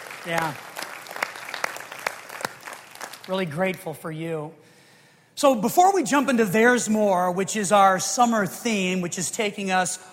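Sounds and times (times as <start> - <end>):
applause: 0.0 - 3.9
speech: 0.2 - 0.7, 3.3 - 4.6, 5.4 - 10.1.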